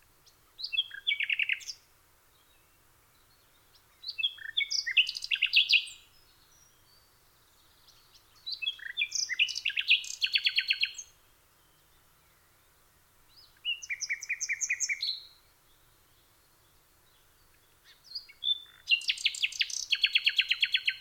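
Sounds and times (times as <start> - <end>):
common nightingale song: 0.2 - 20.9.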